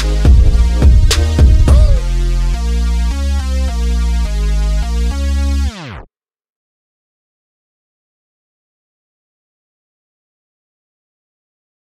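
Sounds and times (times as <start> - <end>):
Arabic trap music: 0.0 - 5.9.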